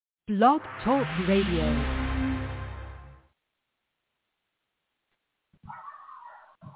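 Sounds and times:
speech: 0.3 - 2.0
dog barking outside window: 5.6 - 6.7.

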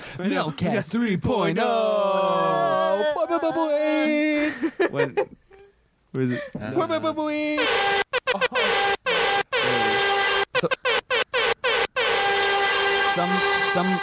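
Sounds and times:
speech: 0.2 - 5.4, 6.1 - 8.8, 10.6 - 10.9, 13.2 - 14.0
air horn blaring: 7.6 - 14.0.

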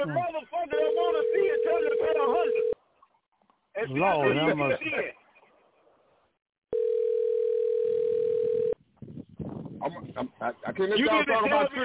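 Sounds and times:
speech: 0.0 - 0.8, 3.8 - 5.2, 10.2 - 11.8
telephone dial tone while placing a call: 1.2 - 2.8, 6.7 - 8.8.

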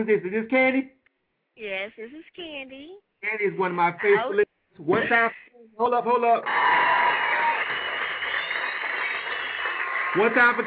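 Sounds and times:
speech: 0.0 - 1.0, 1.6 - 7.3, 10.1 - 10.6
round of applause: 6.4 - 10.6.

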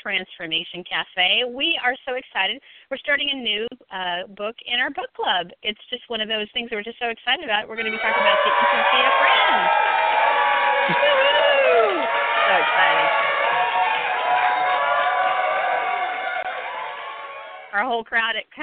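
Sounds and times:
speech: 0.0 - 10.2, 10.9 - 11.2, 17.7 - 18.6
crowd cheering and whooping: 7.8 - 17.8.

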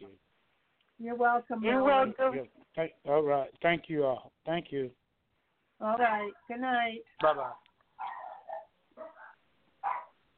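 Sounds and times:
speech: 1.0 - 5.0, 5.8 - 8.1
dog barking: 8.0 - 10.2.

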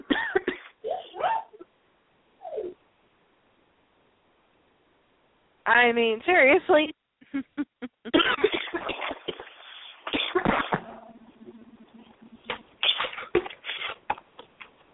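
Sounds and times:
person coughing: 0.0 - 1.6, 8.1 - 11.0, 12.8 - 13.6
speech: 5.7 - 7.4.

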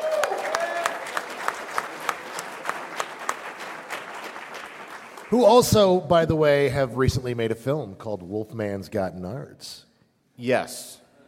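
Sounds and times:
live audience applause: 0.0 - 5.8
speech: 5.3 - 11.0.

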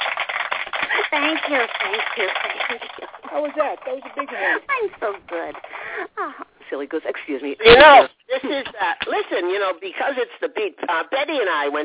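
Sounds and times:
hands clapping: 0.0 - 5.8, 8.6 - 9.2
speech: 1.1 - 11.8.

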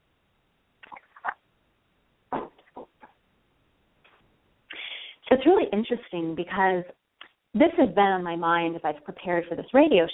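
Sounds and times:
sipping and swallowing a drink: 0.8 - 1.4
speech: 5.4 - 7.0, 7.6 - 10.1.

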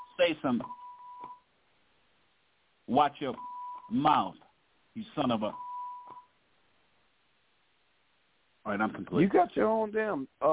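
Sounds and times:
censor bleep from a beep button: 0.0 - 1.4, 3.3 - 4.1
speech: 0.2 - 0.8, 2.9 - 4.4, 5.0 - 5.6, 8.7 - 10.5.

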